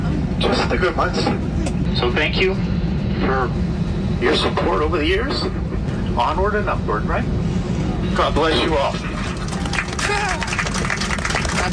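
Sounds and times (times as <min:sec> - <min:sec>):
speech: 0:00.4 - 0:05.6, 0:06.2 - 0:07.5, 0:08.2 - 0:09.1
airline passengers' sparse applause: 0:09.1 - 0:11.7.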